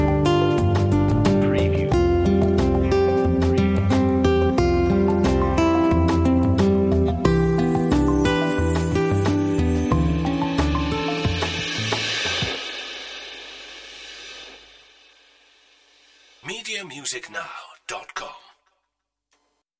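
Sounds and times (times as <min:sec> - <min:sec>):
strings: 0:00.1 - 0:13.3.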